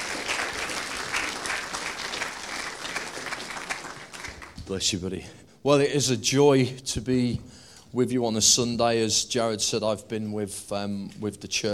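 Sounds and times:
audience applause welcoming speaker: 0:00.0 - 0:04.6
speech: 0:04.7 - 0:11.7.

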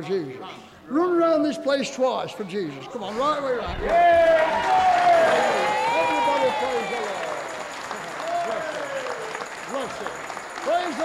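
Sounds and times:
speech: 0:00.0 - 0:05.9
audience clapping: 0:03.8 - 0:11.0.

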